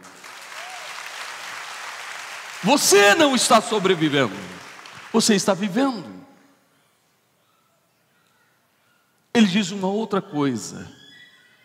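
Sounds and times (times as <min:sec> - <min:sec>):
audience applauding: 0:00.0 - 0:06.0
speech: 0:02.6 - 0:06.2, 0:09.4 - 0:11.0.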